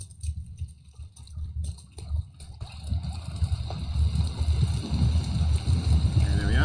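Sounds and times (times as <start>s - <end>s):
rain sound effect: 0.0s - 6.6s.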